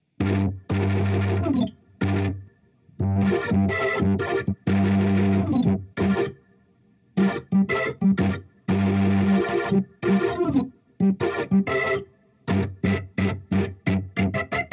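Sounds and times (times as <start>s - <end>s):
hybrid neural overdriven guitar through an organ amp: 0.1s - 6.4s, 7.2s - 14.7s.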